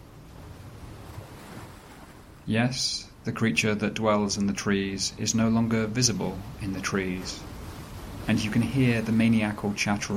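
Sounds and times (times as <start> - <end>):
ocean waves washing on beach: 0.0 - 10.1
speech: 2.5 - 7.5, 8.3 - 10.1.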